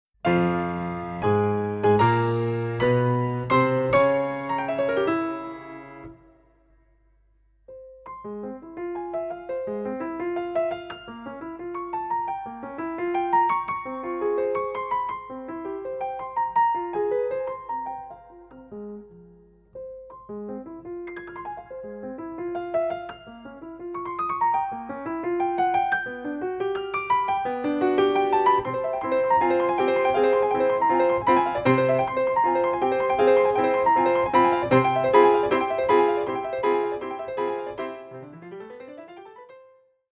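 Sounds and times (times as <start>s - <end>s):
agitato piano sonata movement: 0.2s - 6.4s, 7.7s - 39.8s.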